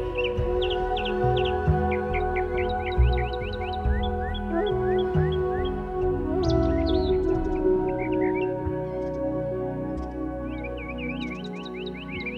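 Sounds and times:
birds: 0:00.0 - 0:12.3
new age music: 0:00.0 - 0:12.3.

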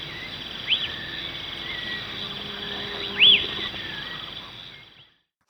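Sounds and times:
lesser elaenia calling slurred notes in Ecuador: 0:00.7 - 0:04.9.

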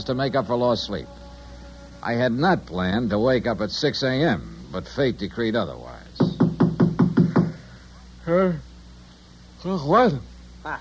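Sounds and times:
speech: 0:00.0 - 0:01.2, 0:02.0 - 0:06.0, 0:08.3 - 0:08.7, 0:09.6 - 0:10.7
firm knocking on a door: 0:06.2 - 0:07.6.

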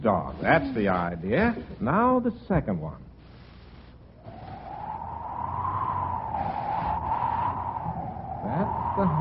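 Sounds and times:
speech: 0:00.0 - 0:03.1, 0:08.5 - 0:09.2
whistle sounding like wind whistling: 0:04.2 - 0:09.2.

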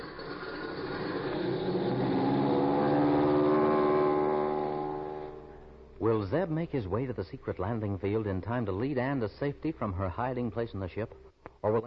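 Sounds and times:
aircraft motor starting, radio drama sound effect: 0:00.0 - 0:06.0
speech: 0:06.2 - 0:11.8.

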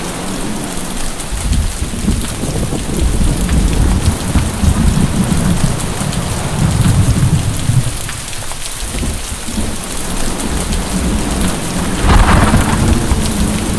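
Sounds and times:
heavy rain: 0:00.0 - 0:13.7
thunder: 0:01.4 - 0:08.1, 0:10.5 - 0:13.7.

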